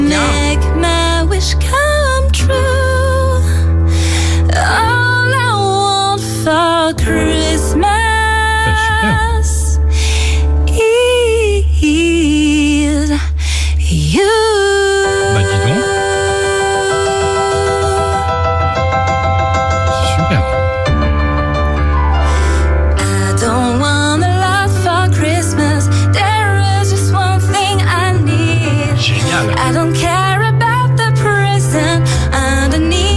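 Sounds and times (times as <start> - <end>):
person singing ornamented melody: 0.0 - 3.4, 7.0 - 9.8, 14.0 - 18.3, 19.9 - 20.6, 27.2 - 33.1
recorded pop song cover: 0.0 - 33.1.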